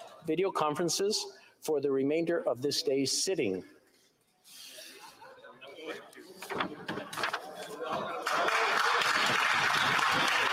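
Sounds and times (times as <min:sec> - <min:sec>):
speech: 0:00.2 - 0:03.8
applause in parliament: 0:08.2 - 0:10.5.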